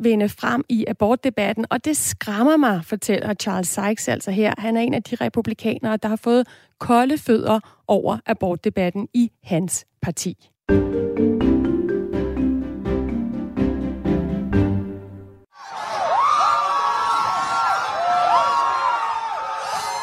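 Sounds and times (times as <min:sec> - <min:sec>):
speech: 0:00.0 - 0:11.4
rhythmic music: 0:10.7 - 0:15.3
crowd of protesters cheering: 0:15.5 - 0:20.0
protesters whooping and shouting: 0:15.6 - 0:20.0.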